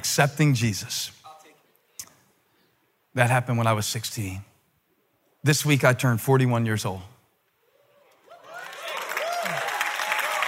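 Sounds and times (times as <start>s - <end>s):
speech: 0.2s - 1.2s, 3.2s - 4.5s, 5.4s - 7.1s
audience applause: 8.3s - 10.4s.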